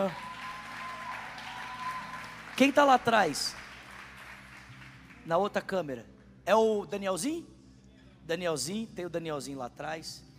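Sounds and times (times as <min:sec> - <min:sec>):
speech: 0:00.0 - 0:00.3, 0:02.6 - 0:03.6, 0:05.3 - 0:07.5, 0:08.3 - 0:10.3
audience applause: 0:00.0 - 0:05.2.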